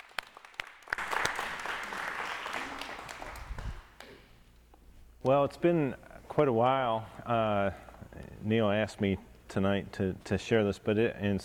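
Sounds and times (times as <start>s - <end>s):
congregation applause welcoming a speaker in church: 0.0s - 4.2s
speech: 5.2s - 11.4s.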